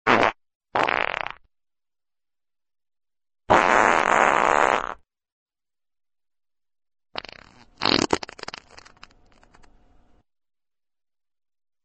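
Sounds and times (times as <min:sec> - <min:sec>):
farts: 0:00.0 - 0:01.5, 0:03.5 - 0:05.0, 0:07.2 - 0:09.5.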